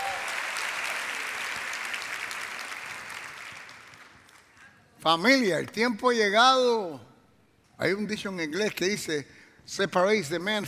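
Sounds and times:
audience applause: 0:00.0 - 0:04.2
speech: 0:05.0 - 0:07.1, 0:07.8 - 0:10.6.

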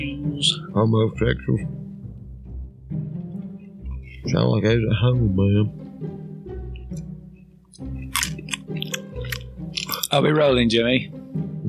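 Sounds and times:
speech: 0:00.3 - 0:01.8, 0:04.2 - 0:05.8, 0:10.1 - 0:11.2
chewing crunchy Chex Mix snack: 0:07.8 - 0:10.2.

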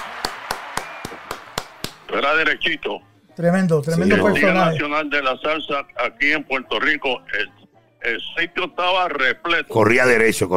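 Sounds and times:
applause: 0:00.0 - 0:02.1
speech: 0:02.1 - 0:10.5.

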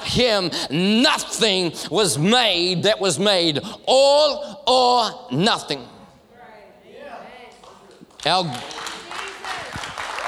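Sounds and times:
speech: 0:00.1 - 0:06.0, 0:08.2 - 0:08.8
audience clapping: 0:07.5 - 0:10.2.

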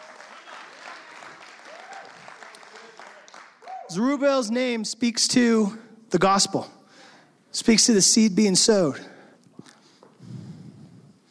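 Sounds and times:
audience clapping: 0:00.0 - 0:04.0
speech: 0:03.9 - 0:06.8, 0:07.6 - 0:09.1.

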